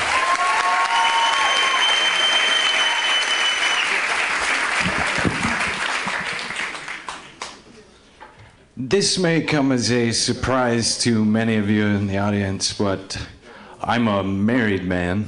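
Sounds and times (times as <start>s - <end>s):
audience applause at a comedy show welcoming a comedian to the stage: 0.0s - 7.6s
whistle: 0.9s - 4.0s
speech: 8.9s - 15.2s.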